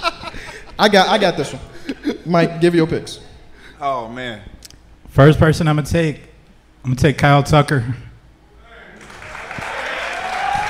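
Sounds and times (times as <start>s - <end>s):
speech: 0.8s - 1.7s, 2.3s - 4.6s, 5.2s - 8.0s
light applause: 9.0s - 10.6s.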